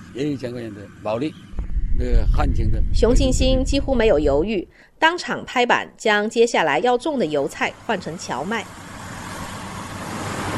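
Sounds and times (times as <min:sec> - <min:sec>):
distant combine harvester working: 0:00.0 - 0:04.4, 0:07.0 - 0:10.5
speech: 0:00.2 - 0:08.9.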